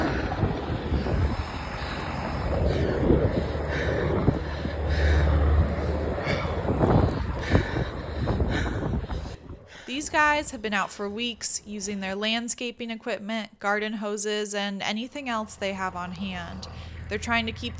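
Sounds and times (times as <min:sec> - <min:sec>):
helicopters flying in over a wildfire: 0:00.0 - 0:11.9, 0:14.8 - 0:17.7
speech: 0:10.0 - 0:17.7.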